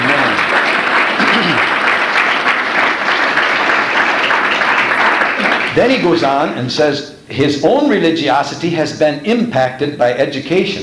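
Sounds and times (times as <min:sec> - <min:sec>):
audience clapping: 0:00.0 - 0:06.0
speech: 0:05.8 - 0:10.8.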